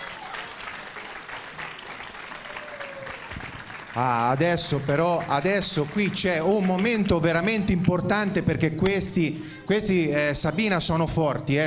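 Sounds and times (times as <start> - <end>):
crowd applause: 0.0 - 8.1
speech: 4.0 - 11.6.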